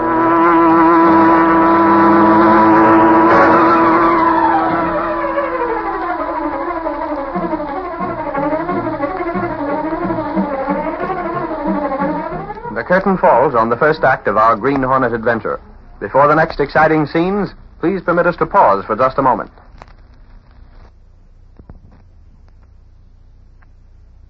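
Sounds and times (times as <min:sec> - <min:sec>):
huge sleek black car driving along the street: 0:00.0 - 0:16.7
speech: 0:13.0 - 0:19.6.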